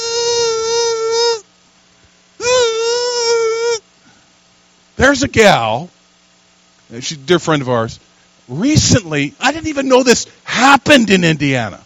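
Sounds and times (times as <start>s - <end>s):
voice imitating a mosquito whine: 0.0s - 1.5s, 2.4s - 3.9s
speech: 5.0s - 6.0s, 6.9s - 11.8s.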